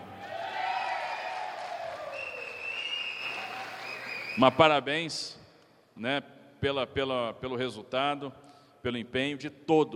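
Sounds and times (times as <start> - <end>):
enthusiastic crowd cheering and applauding: 0.0 - 4.4
speech: 4.4 - 5.4, 6.0 - 9.9.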